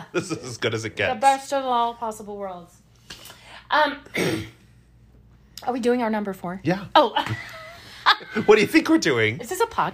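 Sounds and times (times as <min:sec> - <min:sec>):
speech: 0:00.0 - 0:02.8, 0:03.7 - 0:04.6, 0:05.6 - 0:07.6, 0:08.2 - 0:09.9
coughing: 0:04.0 - 0:04.6.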